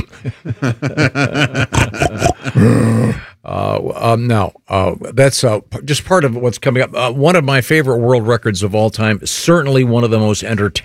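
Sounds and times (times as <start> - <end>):
laughter: 0.0 - 2.8
speech: 0.2 - 1.9, 2.6 - 3.2, 4.0 - 10.8
deep guttural throaty roars: 1.6 - 3.3
rapid rhythmic grunting snorts: 1.8 - 3.3.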